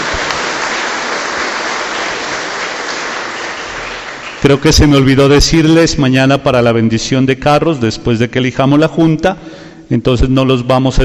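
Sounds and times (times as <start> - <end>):
crowd applauding: 0.0 - 4.9
speech: 4.4 - 11.0.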